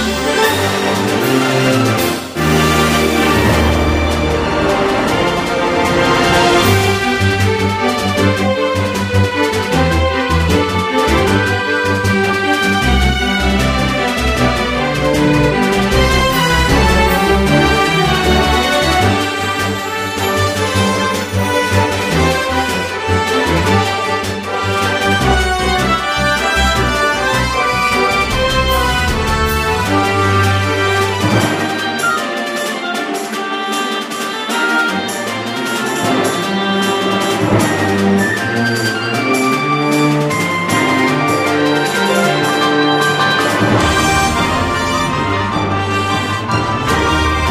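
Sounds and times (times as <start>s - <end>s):
battle background music: 0.2s - 47.4s.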